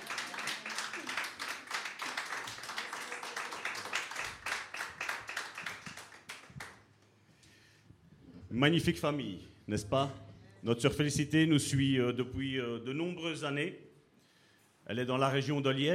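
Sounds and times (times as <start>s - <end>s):
audience applause: 0.0s - 6.8s
speech: 8.6s - 13.9s, 14.9s - 15.9s.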